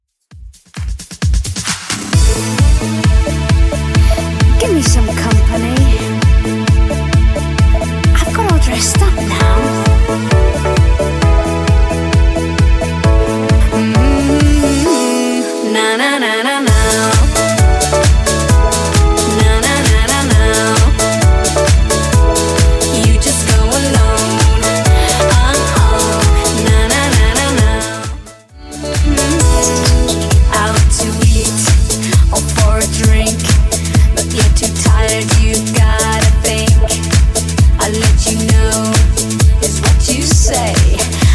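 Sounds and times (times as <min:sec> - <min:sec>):
90s electronic dance track: 0:00.3 - 0:41.3.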